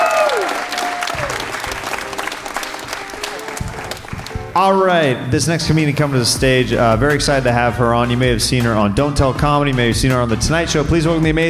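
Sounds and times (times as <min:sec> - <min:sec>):
audience applause for a stand-up comedian: 0:00.0 - 0:04.7
speech: 0:04.6 - 0:11.4.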